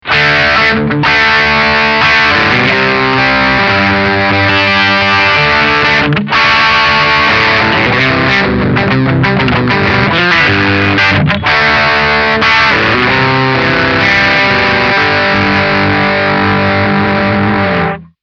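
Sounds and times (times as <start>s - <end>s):
onboard distortion: 0.0s - 18.2s.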